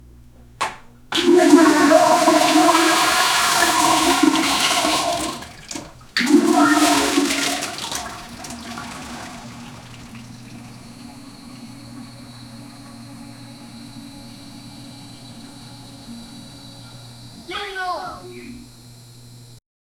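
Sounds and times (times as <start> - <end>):
toilet: 0.6 - 19.6
person yelling: 17.5 - 18.6.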